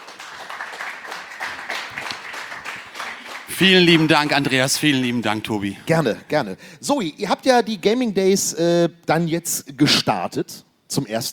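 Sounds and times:
audience applause: 0.0s - 5.3s
speech: 3.5s - 11.3s.

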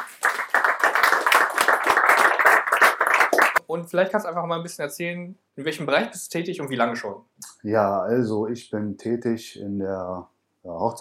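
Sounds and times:
applause: 0.0s - 3.6s
speech: 3.8s - 10.9s.

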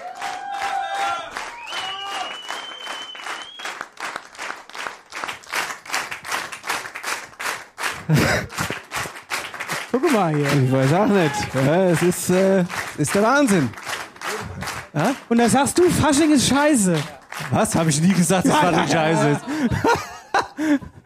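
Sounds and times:
crowd clapping at a Fasching carnival gathering: 0.0s - 20.8s
whistle-like tones: 1.5s - 3.7s
laughter: 8.0s - 9.1s, 17.8s - 21.0s
speech: 8.1s - 8.8s, 10.1s - 13.8s, 15.0s - 20.9s.

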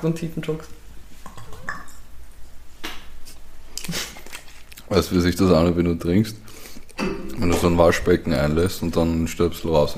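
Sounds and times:
speech: 0.0s - 0.8s, 4.9s - 9.9s
glasses clinking in a toast: 1.3s - 2.0s.

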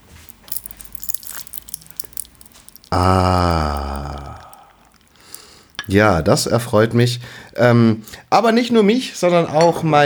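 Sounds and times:
hot tea poured over rock sugar: 0.0s - 7.6s
rock sugar crackling and popping under hot tea: 0.0s - 7.7s
speech: 3.0s - 3.8s, 5.9s - 10.0s.

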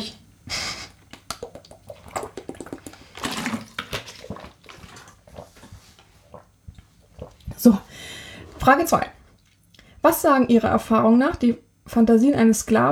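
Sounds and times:
sipping and swallowing water: 1.0s - 9.9s
liquid sloshing: 1.2s - 9.9s
speech: 7.6s - 7.9s, 8.6s - 9.2s, 10.0s - 12.8s.

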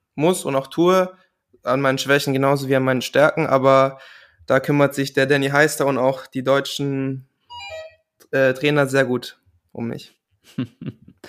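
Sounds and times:
speech: 0.2s - 7.3s, 8.3s - 11.2s
bell ringing: 7.5s - 8.0s
laughter: 10.5s - 11.2s.

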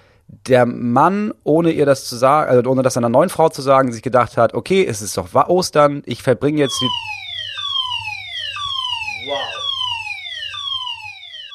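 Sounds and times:
speech: 0.5s - 7.2s
fire alarm going off: 6.6s - 11.5s.

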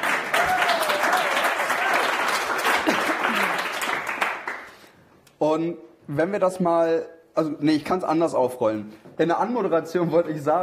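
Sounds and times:
audience applause: 0.0s - 4.9s
speech: 5.4s - 10.6s.

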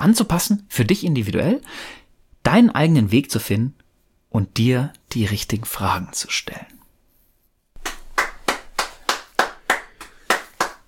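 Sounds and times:
speech: 0.0s - 6.7s
hand clapping: 7.8s - 10.8s.

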